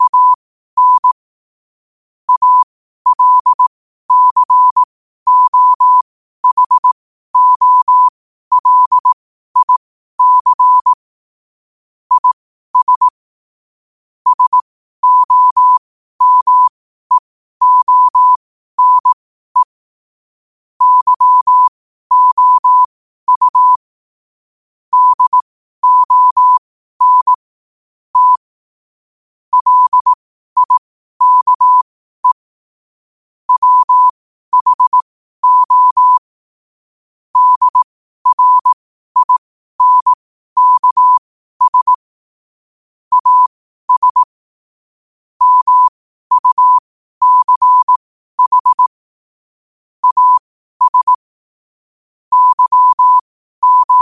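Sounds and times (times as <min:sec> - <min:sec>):
morse code at 5 wpm: 0:00.0 - 0:01.2, 0:02.3 - 0:10.9, 0:12.1 - 0:13.2, 0:14.3 - 0:19.8, 0:20.8 - 0:23.8, 0:24.9 - 0:27.4, 0:28.2 - 0:28.5, 0:29.5 - 0:32.5, 0:33.5 - 0:36.3, 0:37.4 - 0:42.0, 0:43.1 - 0:44.3, 0:45.4 - 0:48.9, 0:50.0 - 0:51.2, 0:52.3 - 0:54.0.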